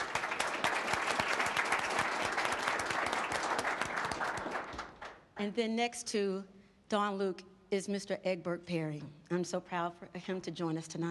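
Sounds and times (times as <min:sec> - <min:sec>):
crowd clapping: 0:00.0 - 0:05.4
speech: 0:05.4 - 0:11.0.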